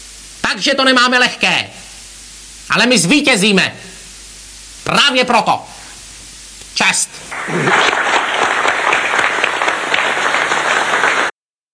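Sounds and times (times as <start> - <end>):
speech: 0.5 - 1.8, 2.7 - 3.8, 4.8 - 5.7, 6.8 - 8.2
audience applause: 7.3 - 11.4.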